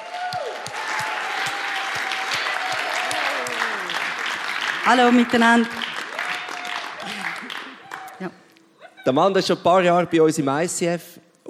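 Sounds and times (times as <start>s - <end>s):
audience applause: 0.0s - 8.2s
speech: 4.8s - 5.8s, 9.0s - 11.4s.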